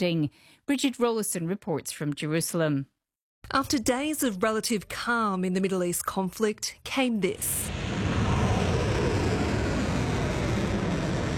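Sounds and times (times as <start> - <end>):
speech: 0.0 - 7.8
rumbling roar of missiles or drones being launched: 7.4 - 11.3.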